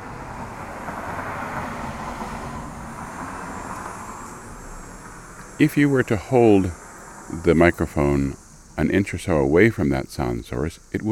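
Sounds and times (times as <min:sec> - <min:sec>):
car driving past recorded via contact microphone: 0:00.0 - 0:08.8
speech: 0:05.6 - 0:11.1.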